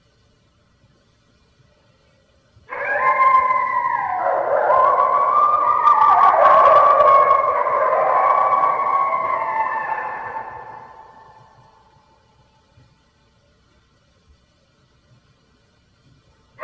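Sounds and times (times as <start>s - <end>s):
red wolf howling: 2.7s - 12.1s.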